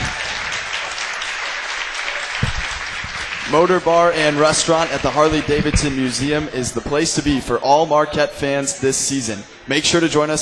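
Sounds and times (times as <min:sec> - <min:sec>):
crowd applauding: 0:00.0 - 0:07.4
speech: 0:03.5 - 0:10.3.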